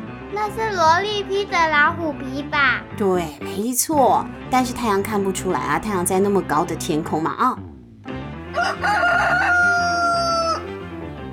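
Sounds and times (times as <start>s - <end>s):
speech: 0.3s - 7.7s, 8.6s - 9.7s
rooster crowing: 8.5s - 10.8s.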